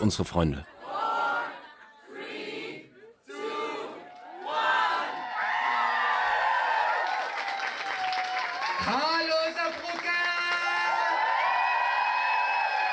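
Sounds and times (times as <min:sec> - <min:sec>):
crowd cheering at the Drag Habibi drag show in Brooklyn: 0:00.8 - 0:12.9.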